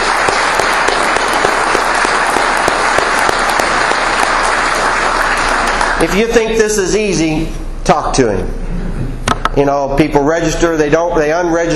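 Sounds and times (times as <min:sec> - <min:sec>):
applause: 0:00.0 - 0:06.5
speech: 0:06.0 - 0:08.6, 0:09.6 - 0:11.7.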